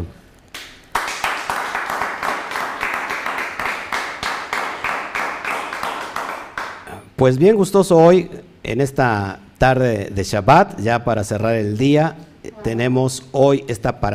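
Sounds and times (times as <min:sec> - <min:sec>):
audience applause: 0:00.9 - 0:06.8
speech: 0:07.2 - 0:14.1.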